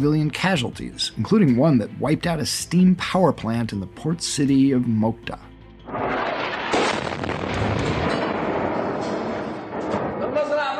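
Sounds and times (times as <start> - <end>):
speech: 0.0 - 6.3
bomb explosion from airstrike: 5.9 - 10.7.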